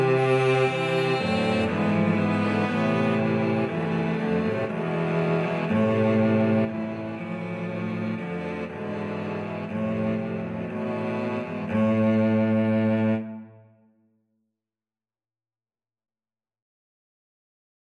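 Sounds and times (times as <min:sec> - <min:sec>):
cello quartet: 0:00.0 - 0:13.8.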